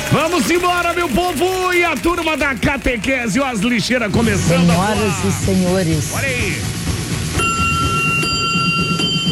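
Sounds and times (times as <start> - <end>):
speech: 0.1 - 6.8
bell ringing: 7.3 - 9.2.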